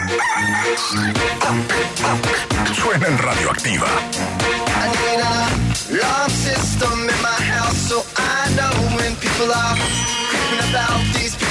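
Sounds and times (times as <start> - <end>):
rooster crowing: 0.0 - 1.2
speech: 0.8 - 11.4.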